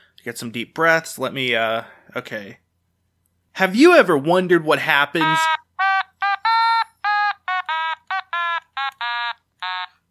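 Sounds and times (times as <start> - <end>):
speech: 0.2 - 2.6, 3.6 - 5.6
alarm going off: 5.2 - 7.9.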